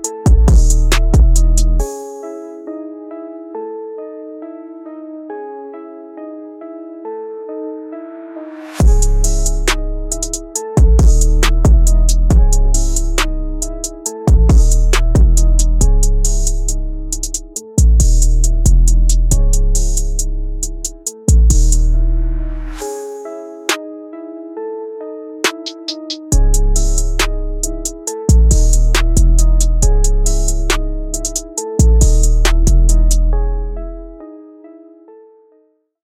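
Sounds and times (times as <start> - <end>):
hard dark beat: 0.0 - 1.9, 8.8 - 21.9, 25.5 - 33.3.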